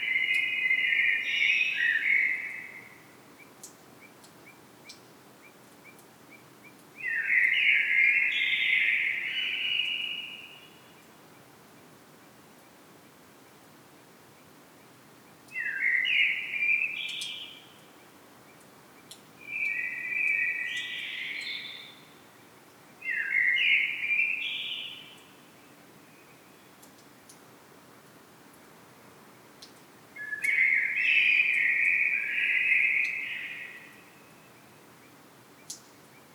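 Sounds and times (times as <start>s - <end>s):
common blackbird song: 0.0s - 2.9s, 7.0s - 10.7s, 15.5s - 17.6s, 19.4s - 22.1s, 23.0s - 25.2s, 30.2s - 34.4s.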